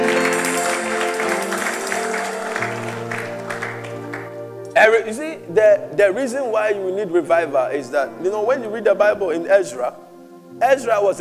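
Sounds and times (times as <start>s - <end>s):
audience applause: 0.0s - 4.4s
speech: 4.8s - 11.2s.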